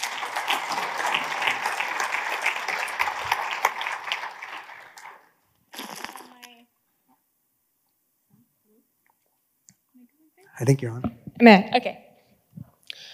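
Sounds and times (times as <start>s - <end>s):
audience applause welcoming a speaker at a church gathering in Garden City: 0.0s - 6.1s
speech: 10.6s - 12.0s.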